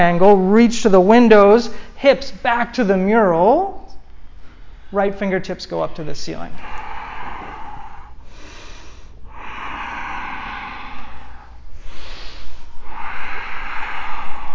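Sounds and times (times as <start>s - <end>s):
speech: 0.0s - 3.8s, 4.9s - 6.8s
strong breathing through nose and mouth during a yoga triangle pose: 4.1s - 5.0s, 5.8s - 14.5s.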